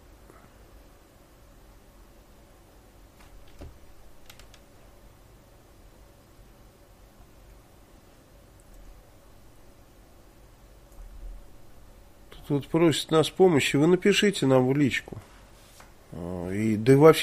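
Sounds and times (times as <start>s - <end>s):
typing on a keyboard: 4.2s - 4.6s
speech: 12.5s - 15.3s, 16.5s - 17.2s.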